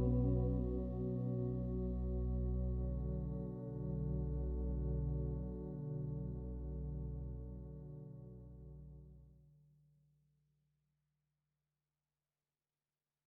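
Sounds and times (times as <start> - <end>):
tower ambience: 0.0 - 7.5.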